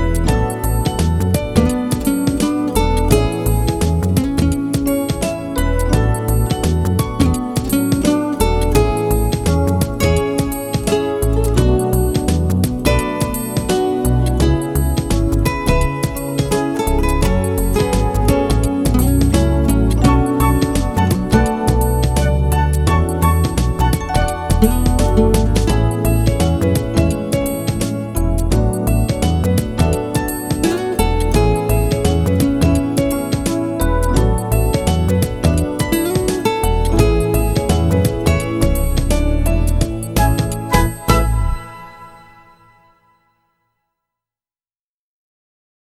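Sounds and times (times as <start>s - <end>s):
background music: 0.0s - 43.3s.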